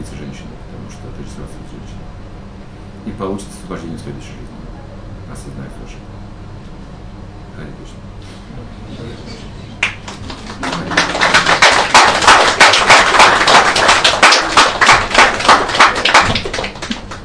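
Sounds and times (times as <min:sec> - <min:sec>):
speech: 0:03.1 - 0:04.6, 0:05.3 - 0:06.2, 0:07.6 - 0:09.6
audience clapping after lecture: 0:09.8 - 0:17.2.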